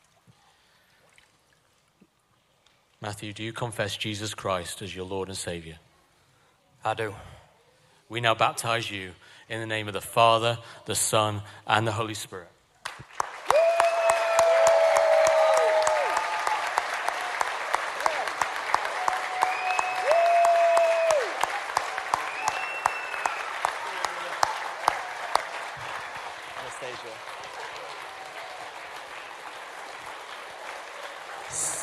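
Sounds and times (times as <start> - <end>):
speech: 3.0 - 5.9, 6.8 - 7.4, 8.1 - 12.6
audience clapping after baptism: 12.8 - 31.8
audience whoops and whistle-like cries: 13.5 - 16.6, 19.0 - 21.5, 22.1 - 23.8.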